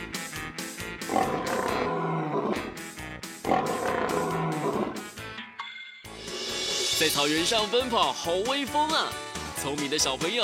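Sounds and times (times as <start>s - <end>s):
lion roaring: 1.1s - 2.8s, 3.4s - 5.2s
steady rhythmic beat of sharp percussive hits: 6.1s - 8.8s
speech: 7.0s - 10.4s.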